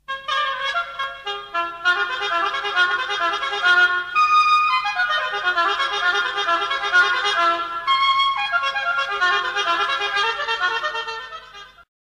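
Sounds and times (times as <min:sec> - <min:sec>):
solo oboe: 0:00.1 - 0:11.9.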